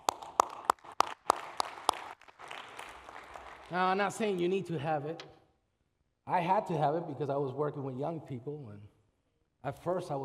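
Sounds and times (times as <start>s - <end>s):
person clapping: 0.0s - 4.5s
speech: 3.7s - 5.4s, 6.3s - 8.9s, 9.6s - 10.2s.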